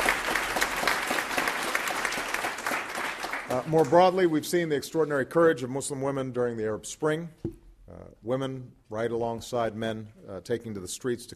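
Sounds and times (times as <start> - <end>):
audience applause: 0.0 - 4.4
speech: 3.5 - 11.3.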